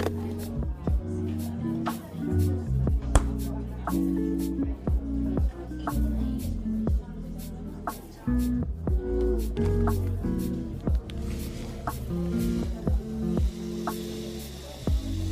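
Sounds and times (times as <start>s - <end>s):
murmur of voices in a coffee shop: 0.0s - 15.3s.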